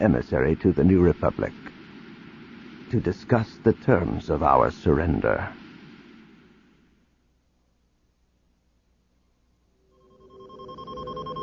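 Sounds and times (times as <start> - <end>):
speech: 0.0 - 1.7, 2.9 - 5.6
Millennium Falcon console proximity beep: 10.1 - 11.4.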